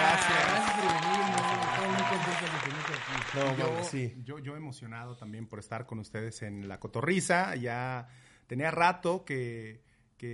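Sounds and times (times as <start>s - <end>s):
audience applause: 0.0s - 4.0s
speech: 3.4s - 10.3s.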